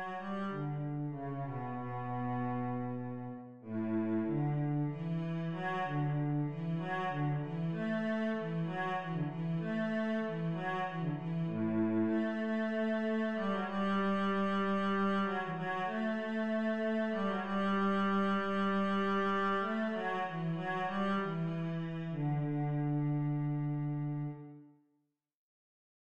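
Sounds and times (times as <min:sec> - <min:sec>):
cello playing: 0:00.0 - 0:24.7.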